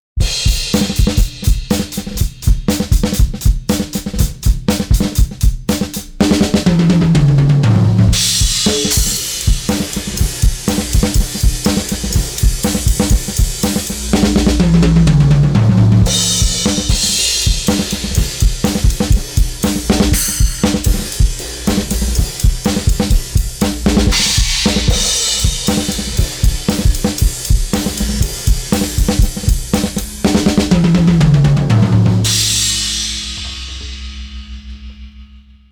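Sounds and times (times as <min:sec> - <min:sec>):
drums: 0:00.1 - 0:35.6.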